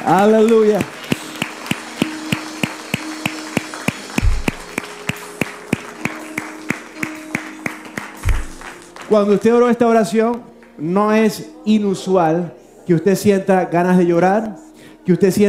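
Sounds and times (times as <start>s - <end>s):
rhythmic audience applause: 0.0s - 9.8s
sustained music tones: 0.0s - 10.8s
speech: 0.1s - 1.0s, 9.1s - 15.4s.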